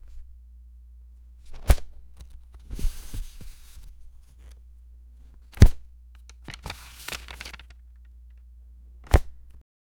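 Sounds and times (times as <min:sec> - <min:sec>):
rummaging through DVDs: 0:01.5 - 0:04.6, 0:05.4 - 0:07.8.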